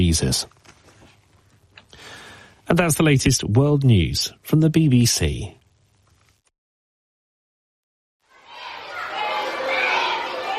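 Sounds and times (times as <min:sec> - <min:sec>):
speech: 0:00.0 - 0:00.6, 0:02.7 - 0:05.6
excited small schoolboys chattering and shouting in primary school corridors in Khartoum, Sudan: 0:08.2 - 0:10.5.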